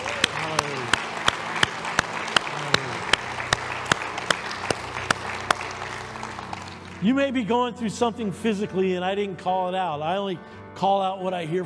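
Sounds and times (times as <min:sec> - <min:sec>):
audience hand claps in unison: 0:00.0 - 0:07.0
speech: 0:07.0 - 0:11.6.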